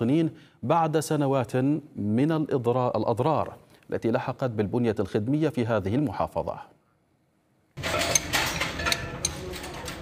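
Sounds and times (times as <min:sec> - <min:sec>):
speech: 0:00.0 - 0:06.7
wrenches clinking among car spare parts: 0:07.8 - 0:10.0.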